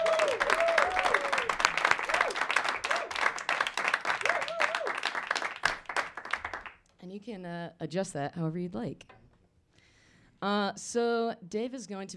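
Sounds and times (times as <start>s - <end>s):
audience applause: 0.0s - 6.8s
speech: 7.2s - 9.2s, 10.4s - 12.1s.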